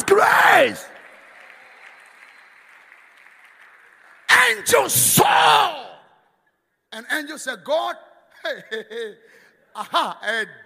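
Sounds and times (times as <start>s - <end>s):
audience clapping: 0.0s - 5.0s
speech: 0.1s - 0.9s, 4.5s - 5.9s, 6.9s - 10.6s.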